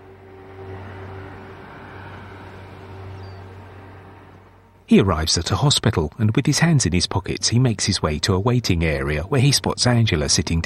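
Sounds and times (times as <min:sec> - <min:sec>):
car engine and road rumble on a winding coastal road: 0:00.0 - 0:07.3
speech: 0:04.9 - 0:10.6.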